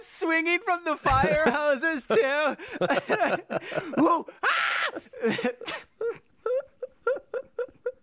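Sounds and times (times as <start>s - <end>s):
speech: 0.1s - 4.4s
laughter: 1.0s - 8.0s
person imitating a gorilla scream: 4.4s - 5.1s.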